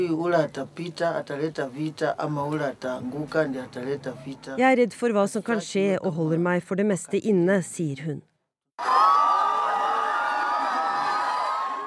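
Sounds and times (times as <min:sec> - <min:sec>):
speech: 0:00.0 - 0:09.1
crowd cheering at political rally: 0:08.8 - 0:11.8
high whoops: 0:08.8 - 0:11.8.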